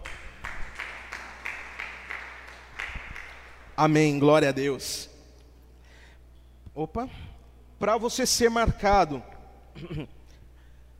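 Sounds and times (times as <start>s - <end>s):
audience rhythmic unison clapping: 0.0s - 4.0s
speech: 3.8s - 5.1s, 6.8s - 7.2s, 7.8s - 10.1s.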